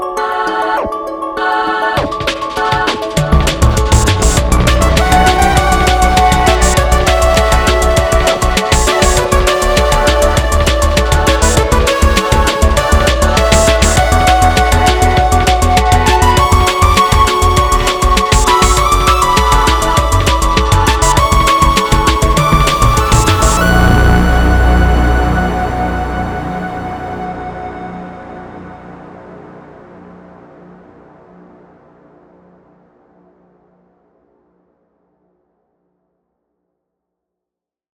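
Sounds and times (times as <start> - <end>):
100 bpm music verse with eight-beat intro: 0.8 - 28.2.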